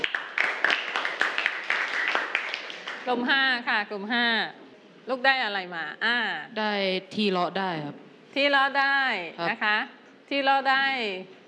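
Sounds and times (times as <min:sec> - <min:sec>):
classroom children clapping to praise another group: 0:00.0 - 0:03.1
speech: 0:03.1 - 0:11.4.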